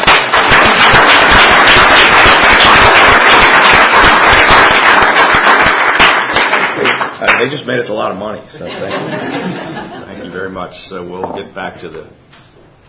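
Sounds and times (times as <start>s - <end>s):
audience applause: 0.0s - 7.5s
speech: 7.4s - 12.3s
laughter: 8.6s - 10.5s.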